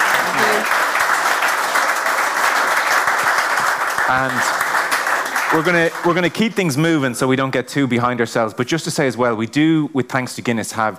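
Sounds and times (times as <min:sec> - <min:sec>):
audience applause: 0:00.0 - 0:06.7
speech: 0:04.1 - 0:04.6, 0:05.5 - 0:10.9.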